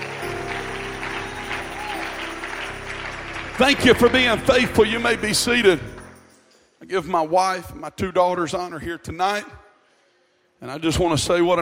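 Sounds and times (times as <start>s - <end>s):
audience clapping hands: 0.0s - 6.3s
speech: 3.6s - 6.0s, 6.9s - 9.6s, 10.6s - 11.5s.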